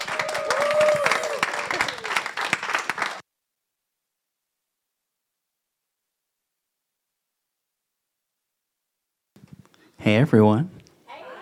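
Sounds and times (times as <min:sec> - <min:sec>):
person whooping: 0:00.0 - 0:02.3
audience applause welcoming a speaker to the stage: 0:00.0 - 0:03.2
speech: 0:10.1 - 0:10.8.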